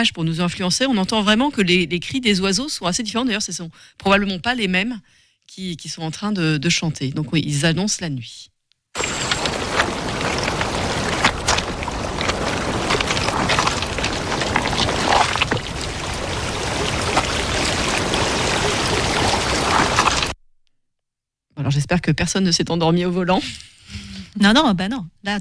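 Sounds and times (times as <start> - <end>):
speech: 0.0 - 9.6, 21.6 - 25.4
person wading through water: 9.0 - 20.3
crackle of plants and water: 9.0 - 20.4.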